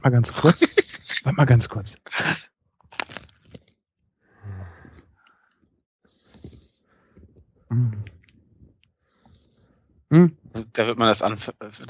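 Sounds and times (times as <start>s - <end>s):
speech: 0.0s - 2.5s, 7.7s - 8.1s, 10.1s - 11.8s
laughter: 0.4s - 1.3s
crunchy chewing of a burger: 2.9s - 3.7s.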